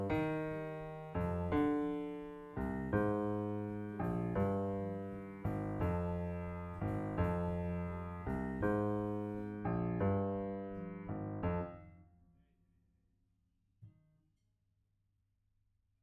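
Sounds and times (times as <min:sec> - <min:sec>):
piano note B: 0:00.0 - 0:11.9.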